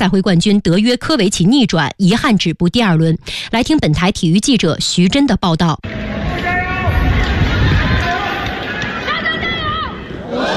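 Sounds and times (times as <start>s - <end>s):
speech: 0.0s - 6.5s
spectators cheering at a tennis match: 5.8s - 10.5s.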